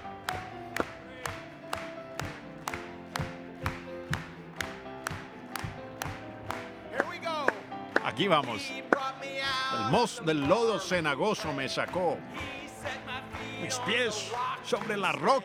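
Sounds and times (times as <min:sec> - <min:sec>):
faint singing voices: 0:00.0 - 0:02.4, 0:06.9 - 0:15.4
instrumental music: 0:00.0 - 0:15.0
rhythmic audience clapping: 0:00.0 - 0:15.4
speech: 0:08.2 - 0:13.0, 0:13.6 - 0:15.4.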